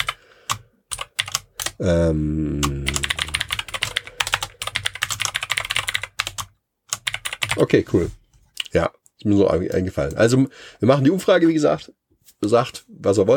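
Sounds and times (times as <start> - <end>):
typing notes on a computer keyboard: 0.0 - 1.8, 2.9 - 7.6
speech: 1.8 - 2.9, 7.6 - 13.3.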